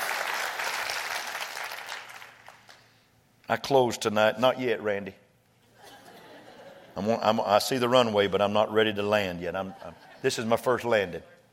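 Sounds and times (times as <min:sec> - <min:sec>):
audience clapping hands: 0:00.0 - 0:03.0
speech: 0:03.5 - 0:05.2, 0:07.0 - 0:11.4
laughter: 0:05.6 - 0:07.2, 0:09.6 - 0:10.6.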